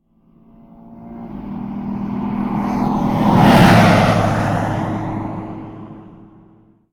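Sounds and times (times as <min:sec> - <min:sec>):
truck: 0:00.0 - 0:06.9.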